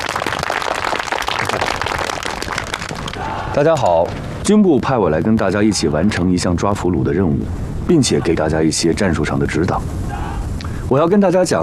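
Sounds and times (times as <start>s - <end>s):
applause: 0.0s - 3.3s
speech: 3.6s - 10.2s, 10.9s - 11.6s.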